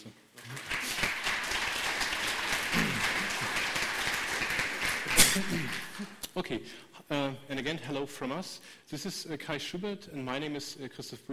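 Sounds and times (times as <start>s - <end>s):
audience applause: 0.4s - 6.2s
speech: 6.4s - 11.3s.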